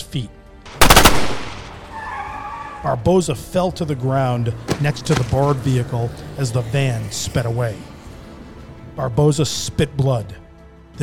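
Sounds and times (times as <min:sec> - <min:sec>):
speech: 0:00.1 - 0:00.4, 0:02.8 - 0:07.9, 0:09.0 - 0:10.4
carbine gunshots: 0:00.7 - 0:02.0, 0:04.7 - 0:05.6.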